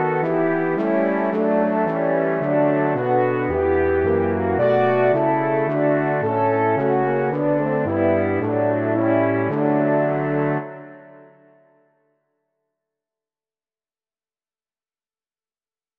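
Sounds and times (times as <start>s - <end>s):
trio of French horns and tuba: 0.0s - 11.6s.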